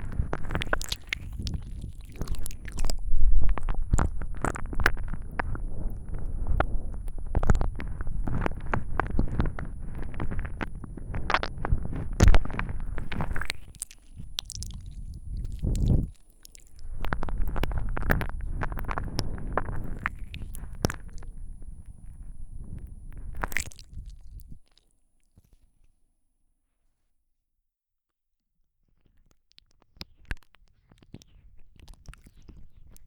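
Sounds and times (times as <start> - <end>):
binaural ear licking in both ears: 0.0 - 24.8.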